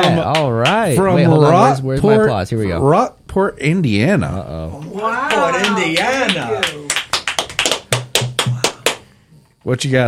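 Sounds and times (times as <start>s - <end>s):
speech: 0.0s - 6.9s, 9.6s - 10.0s
applause sound effect of sharp hand claps: 5.3s - 9.1s.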